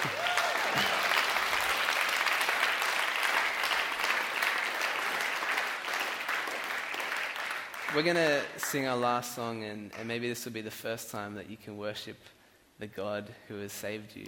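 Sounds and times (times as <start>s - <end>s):
brief tonal whoops: 0.0s - 1.3s
audience applause: 0.0s - 8.3s
speech: 8.0s - 14.2s.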